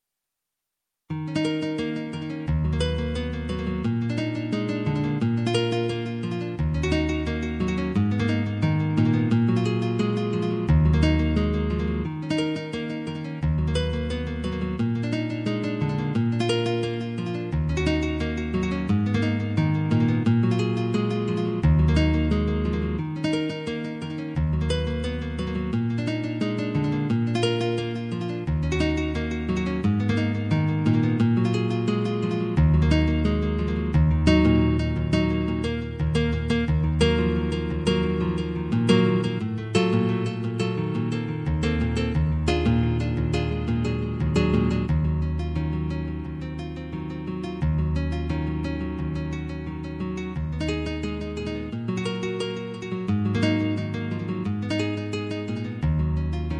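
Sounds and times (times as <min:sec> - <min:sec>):
guitar: 0:01.1 - 0:56.5.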